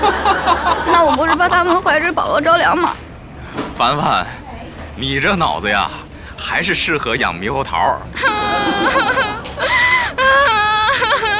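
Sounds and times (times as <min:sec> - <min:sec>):
laughter: 0:00.0 - 0:02.0, 0:08.2 - 0:11.3
speech: 0:00.3 - 0:03.0, 0:03.8 - 0:04.4, 0:05.0 - 0:11.3
person crying: 0:08.2 - 0:11.3.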